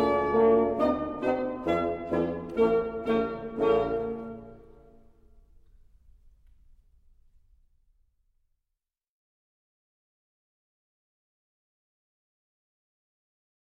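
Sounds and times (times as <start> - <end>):
wind octet of 2 oboes, 2 clarinets, 2 bassoons and 2 horns playing a march: 0.0 - 4.9.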